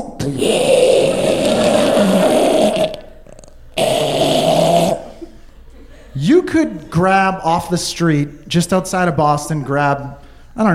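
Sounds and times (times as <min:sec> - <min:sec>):
speech: 0:00.2 - 0:01.1, 0:06.5 - 0:10.7
voice imitating a sleeping man's snoring: 0:00.2 - 0:05.2.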